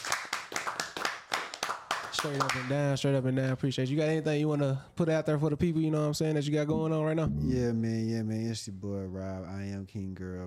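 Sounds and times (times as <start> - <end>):
hand claps: 0.0 - 2.8
speech: 2.2 - 10.4.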